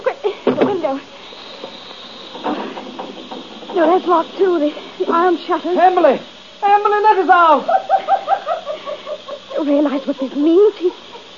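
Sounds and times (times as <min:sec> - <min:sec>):
gas hissing from a pipe: 0:00.0 - 0:11.3
speech: 0:00.9 - 0:01.2, 0:03.8 - 0:08.1, 0:09.6 - 0:11.1
faint knocks and clicks: 0:01.6 - 0:04.1
laughter: 0:07.3 - 0:11.3.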